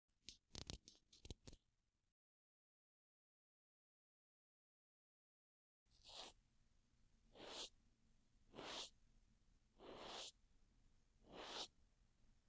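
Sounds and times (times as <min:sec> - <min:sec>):
cotton swab brushing ear rim and earlobe on left side: 0:06.0 - 0:06.4, 0:07.4 - 0:07.7, 0:08.5 - 0:08.9, 0:09.8 - 0:10.4, 0:11.3 - 0:11.7.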